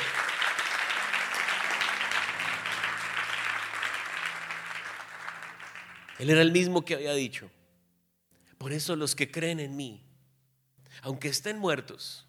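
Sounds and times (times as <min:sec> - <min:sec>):
audience applauding: 0:00.0 - 0:06.6
speech: 0:06.2 - 0:07.6, 0:08.6 - 0:10.1, 0:10.9 - 0:12.2.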